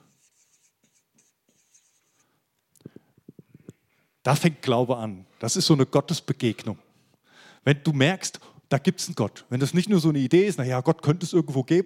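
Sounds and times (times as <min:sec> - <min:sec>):
writing by hand for an audience to read: 0:00.0 - 0:02.2
speech: 0:04.2 - 0:06.8, 0:07.6 - 0:11.8.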